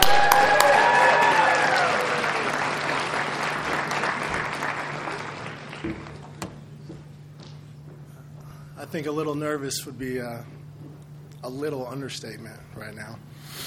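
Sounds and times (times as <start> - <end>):
crowd applauding to welcome a speaker: 0.0 - 6.4
speech: 8.9 - 10.6, 11.4 - 13.5.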